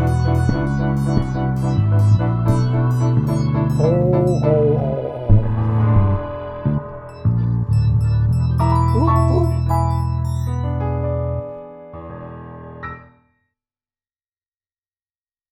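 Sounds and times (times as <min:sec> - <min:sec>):
blues music: 0:00.0 - 0:11.8.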